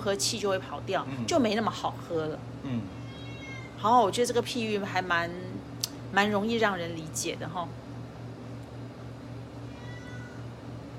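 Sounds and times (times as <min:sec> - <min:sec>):
speech: 0:00.0 - 0:03.0, 0:03.8 - 0:07.8
cat meowing: 0:03.0 - 0:03.9, 0:09.7 - 0:10.5.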